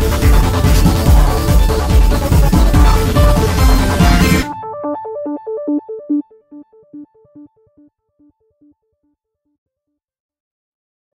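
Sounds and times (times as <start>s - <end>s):
piano music: 0.0s - 7.8s.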